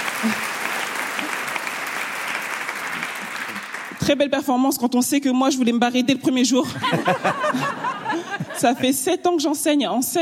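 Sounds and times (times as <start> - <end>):
audience applause: 0.0 - 4.0
speech: 0.2 - 0.5, 4.0 - 10.2
laughter: 6.6 - 9.0.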